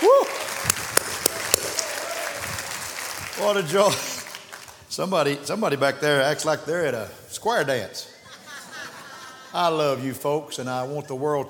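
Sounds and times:
audience clapping: 0:00.0 - 0:04.9
speech: 0:03.4 - 0:04.1, 0:05.0 - 0:08.2, 0:09.5 - 0:11.4
laughter: 0:08.1 - 0:10.1.

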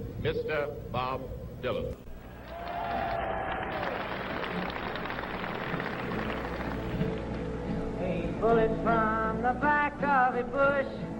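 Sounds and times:
speech: 0:00.2 - 0:02.1, 0:08.4 - 0:11.1
audience applause before performance: 0:02.3 - 0:07.5.

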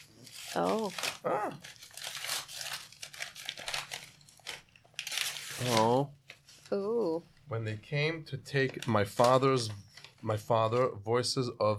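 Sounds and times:
gift package wrapping crinkling and tearing as it is opened: 0:00.0 - 0:06.8, 0:08.5 - 0:10.9
speech: 0:00.5 - 0:01.8, 0:05.6 - 0:11.7.

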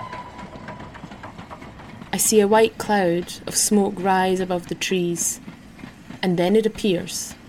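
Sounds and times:
whistle blowing: 0:00.0 - 0:00.7
old engine jogging: 0:00.0 - 0:07.4
speech: 0:02.1 - 0:05.5, 0:06.2 - 0:07.4.

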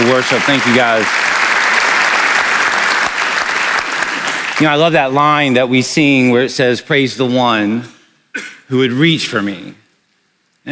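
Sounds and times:
audience applause: 0:00.0 - 0:04.8
speech: 0:00.2 - 0:01.4, 0:04.6 - 0:09.8.

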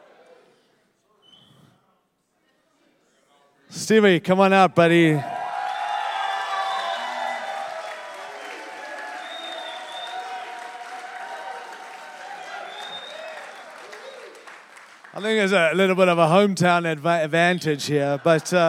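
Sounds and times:
speech: 0:03.7 - 0:05.3, 0:15.3 - 0:18.6
cheers and whoops: 0:05.2 - 0:14.6
crowd applause: 0:05.3 - 0:17.1.

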